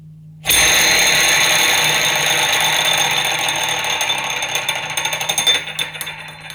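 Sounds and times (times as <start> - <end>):
ring spinning around a door handle: 0.5 - 6.5.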